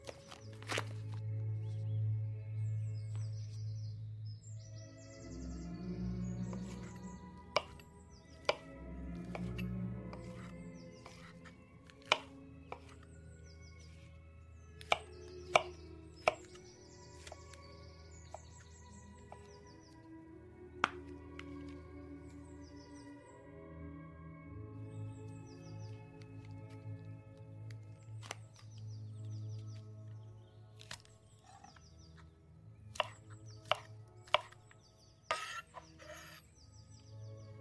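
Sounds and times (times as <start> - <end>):
old-time music playing softly in a kitchen: 0.0 - 37.5.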